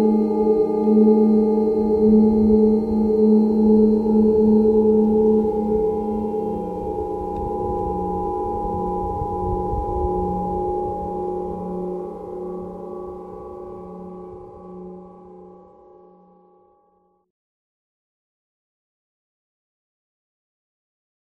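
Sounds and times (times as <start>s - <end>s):
harp: 0.0s - 16.8s.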